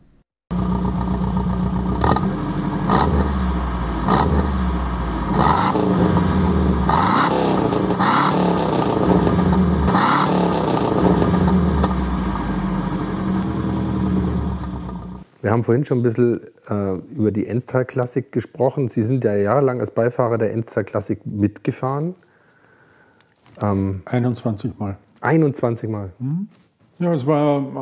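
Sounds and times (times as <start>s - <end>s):
Saab 96 V4 car engine revving: 0.5s - 15.2s
speech: 15.5s - 22.3s, 23.6s - 27.8s.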